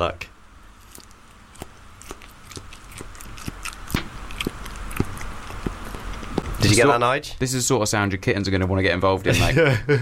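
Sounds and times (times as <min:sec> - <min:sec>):
speech: 0:00.0 - 0:00.3, 0:06.7 - 0:10.0
low steady hum: 0:00.0 - 0:10.0
man chewing a big mouthful of food: 0:00.8 - 0:06.7.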